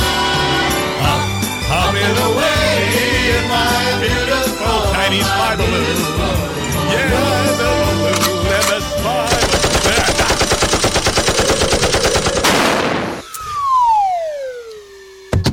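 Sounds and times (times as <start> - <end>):
noisy background: 0.0 - 15.5
machine gun fire: 9.3 - 13.3
falling whistling tone: 12.9 - 15.5.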